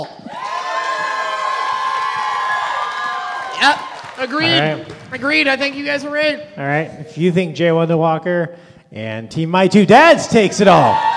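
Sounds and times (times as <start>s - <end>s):
audience applause and cheering: 0.0s - 5.5s, 10.8s - 11.1s
speech: 3.6s - 11.1s.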